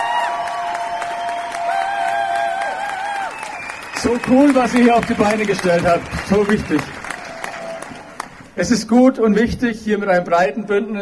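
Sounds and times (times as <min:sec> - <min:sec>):
crowd applause: 0:00.0 - 0:08.6
speech: 0:04.0 - 0:07.0, 0:08.6 - 0:11.0.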